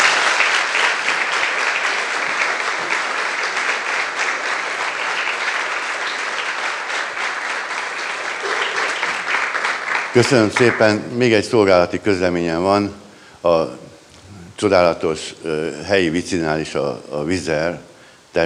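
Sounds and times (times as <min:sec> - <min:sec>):
audience applause: 0:00.0 - 0:11.1
speech: 0:10.2 - 0:13.8, 0:14.6 - 0:18.4.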